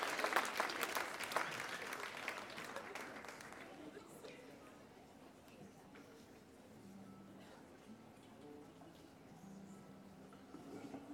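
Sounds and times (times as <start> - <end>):
audience applause: 0.0 - 3.8.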